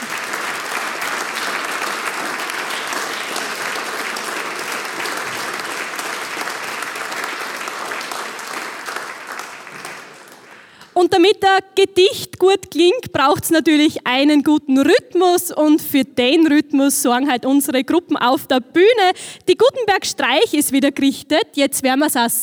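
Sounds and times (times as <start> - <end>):
big audience applause: 0.0 - 11.0
speech: 11.0 - 22.4.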